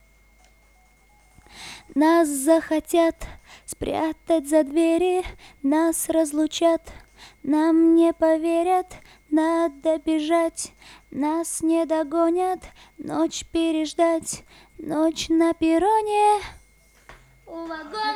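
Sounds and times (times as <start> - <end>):
a cappella vocals: 1.9 - 16.6.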